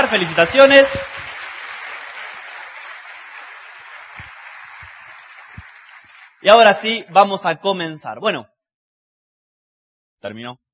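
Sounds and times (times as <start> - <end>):
audience applause: 0.0 - 7.0
speech: 0.1 - 1.3, 6.4 - 8.5, 10.2 - 10.6.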